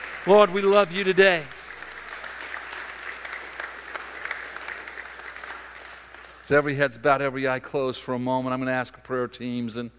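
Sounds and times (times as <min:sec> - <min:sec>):
crowd clapping: 0:00.0 - 0:07.1
speech: 0:00.2 - 0:01.6, 0:06.5 - 0:09.9.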